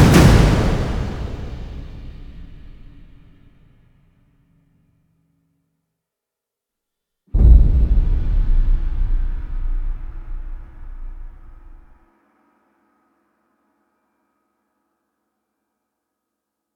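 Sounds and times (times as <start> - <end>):
drums: 0.0 - 3.5, 7.4 - 12.3.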